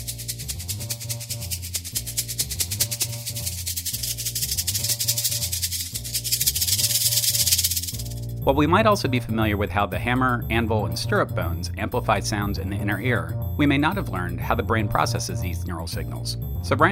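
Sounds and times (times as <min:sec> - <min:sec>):
rattles moving from right to left: 0:00.0 - 0:08.4
speech: 0:08.5 - 0:16.9.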